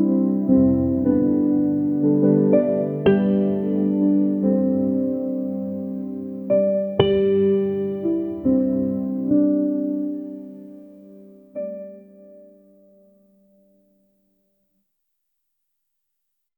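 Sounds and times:
calm uplifting background music: 0.0s - 13.2s.

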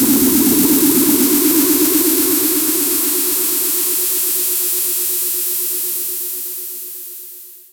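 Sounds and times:
power aura sound effect: 0.1s - 4.6s.

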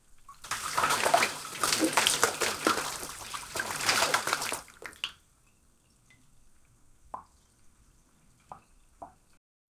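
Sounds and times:
water raining down: 0.4s - 5.1s.

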